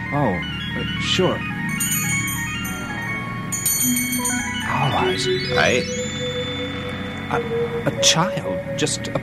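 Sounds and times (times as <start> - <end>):
speech: 0.1 - 1.6, 3.8 - 6.0, 7.3 - 9.2
little silver bell ringing: 1.7 - 8.2.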